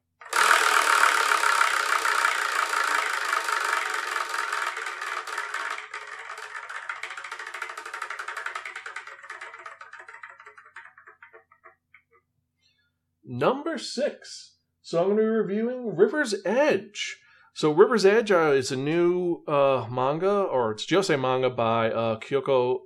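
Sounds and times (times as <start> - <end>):
spinning prize wheel whirring and clicking: 0.0 - 12.2
speech: 13.3 - 22.8.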